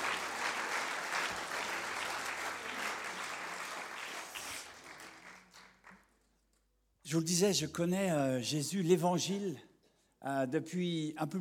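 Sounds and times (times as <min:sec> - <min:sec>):
church congregation clapping and acclaiming Jesus: 0:00.0 - 0:06.3
speech: 0:07.1 - 0:11.3.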